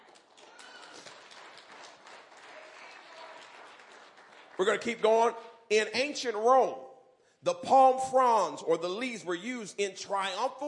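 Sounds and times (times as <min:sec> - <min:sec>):
crowd clapping hands: 0:00.0 - 0:05.3
speech: 0:04.6 - 0:10.6.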